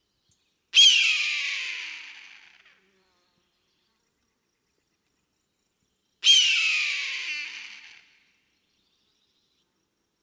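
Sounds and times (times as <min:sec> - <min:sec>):
eagle scream: 0:00.8 - 0:02.6, 0:06.2 - 0:08.1.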